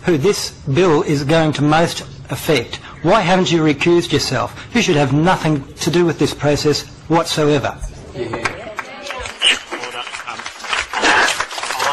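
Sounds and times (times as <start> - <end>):
speech: 0.0 - 8.4
applause from the public gallery: 8.4 - 11.9.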